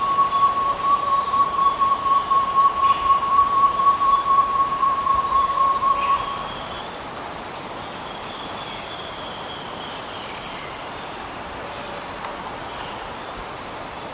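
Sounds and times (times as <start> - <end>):
Marbled Wood Quail calling in Ecuador: 0.0 - 6.8.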